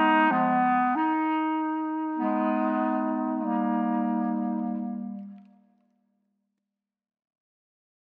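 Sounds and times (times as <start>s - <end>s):
clarinet trio: 0.0s - 5.6s.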